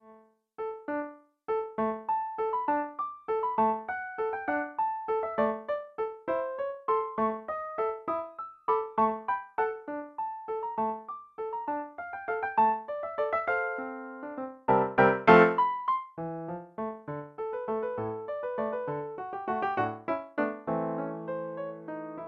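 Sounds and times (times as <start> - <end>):
light piano waltz: 0.0 - 22.2.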